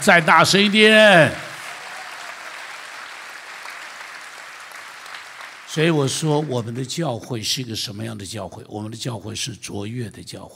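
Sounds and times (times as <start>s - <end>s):
speech: 0.0s - 1.5s, 5.8s - 10.5s
audience applause: 0.0s - 6.8s.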